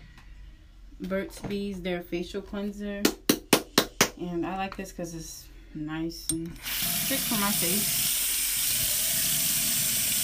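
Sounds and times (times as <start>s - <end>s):
speech: 1.0s - 3.2s, 4.2s - 8.1s
running water from tap: 6.6s - 10.2s.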